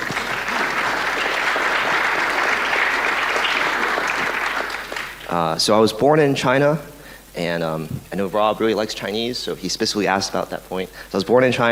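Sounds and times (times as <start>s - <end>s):
audience applause: 0.0s - 5.5s
speech: 5.3s - 11.7s.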